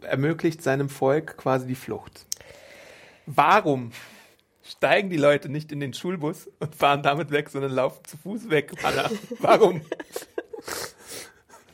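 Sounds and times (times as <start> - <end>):
speech: 0.1 - 2.6, 3.3 - 10.8
laughter: 8.7 - 10.9
person sniffling from a head cold: 10.5 - 11.7.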